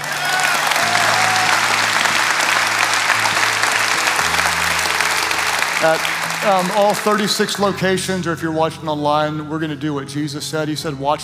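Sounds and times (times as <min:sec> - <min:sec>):
audience clapping: 0:00.0 - 0:07.8
speech: 0:05.8 - 0:11.2.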